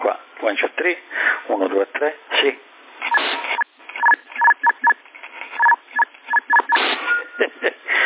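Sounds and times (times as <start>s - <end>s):
speech: 0.4s - 2.7s
radio transmission beep tone: 3.1s - 5.0s, 5.6s - 8.0s.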